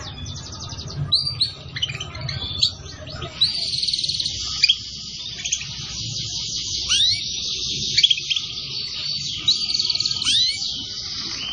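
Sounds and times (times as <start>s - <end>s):
canary trilling song: 0.0s - 11.5s.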